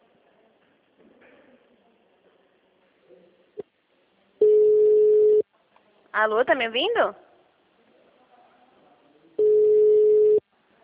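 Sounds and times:
faint noise: 0.0s - 10.8s
electronic telephone hold tone during a call: 4.4s - 5.4s, 9.4s - 10.4s
speech: 6.2s - 7.2s.

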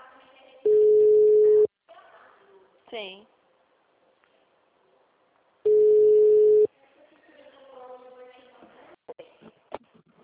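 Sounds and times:
telephone line beep as a call is placed from a caixinha: 0.7s - 1.7s, 5.7s - 6.7s
speech: 2.9s - 3.4s.

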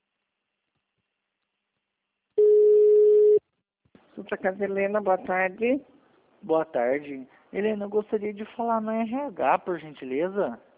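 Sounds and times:
telephone tone during call transfer: 2.4s - 3.4s
speech: 4.3s - 10.7s.

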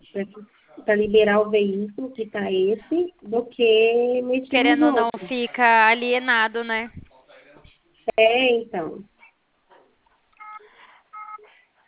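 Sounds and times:
speech: 0.2s - 7.0s, 8.2s - 9.1s
electronic telephone tones signalling an incoming call from an insurance company: 10.4s - 11.4s.

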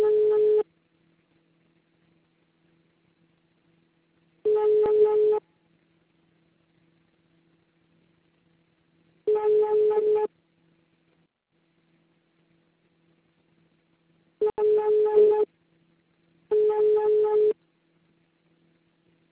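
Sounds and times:
buzzy telephone beeps after an automated answering message: 0.0s - 0.6s, 4.5s - 5.4s, 9.3s - 10.3s, 14.4s - 15.5s, 16.5s - 17.6s
faint hum: 0.0s - 19.3s.

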